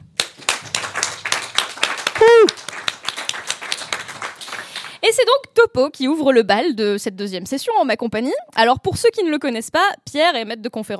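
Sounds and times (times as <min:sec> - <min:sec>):
audience applause: 0:00.0 - 0:05.1
speech: 0:05.1 - 0:10.9.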